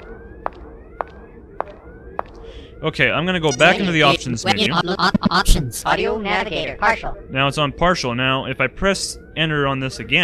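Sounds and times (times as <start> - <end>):
alarm: 0.0 - 10.2
speech: 2.8 - 10.2
laughter: 2.9 - 10.2.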